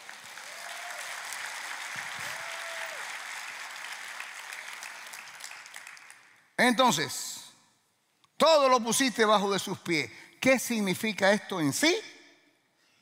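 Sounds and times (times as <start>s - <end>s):
applause: 0.0s - 6.6s
speech: 6.6s - 7.2s, 8.4s - 12.1s.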